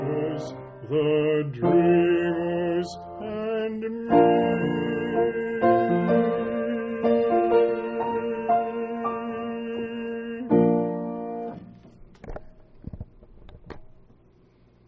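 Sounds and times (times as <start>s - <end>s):
alto choir singing: 0.0s - 11.4s.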